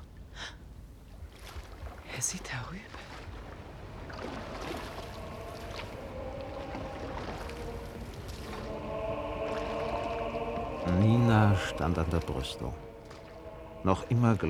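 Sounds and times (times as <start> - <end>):
speech: 2.2 - 3.2, 11.6 - 12.8, 13.8 - 14.4
boat pushing off across water: 3.0 - 14.4.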